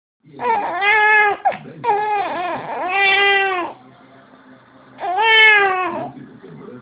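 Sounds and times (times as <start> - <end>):
hungry baby boy: 0.4 - 3.9, 5.0 - 6.2.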